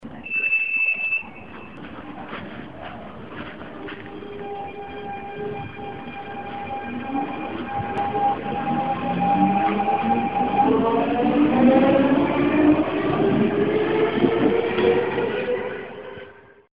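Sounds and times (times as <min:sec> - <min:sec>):
S-tog commuter train: 0:00.0 - 0:16.7.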